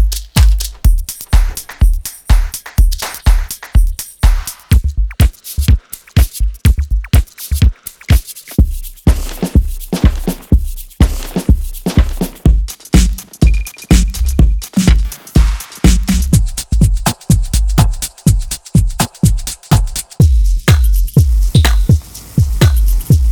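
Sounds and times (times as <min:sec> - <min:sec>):
drum: 0:00.0 - 0:23.2.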